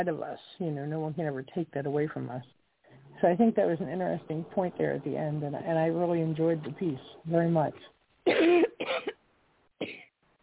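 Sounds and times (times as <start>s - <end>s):
speech: 0.0s - 2.6s, 3.2s - 9.2s
person coughing: 8.3s - 9.2s, 9.8s - 10.2s.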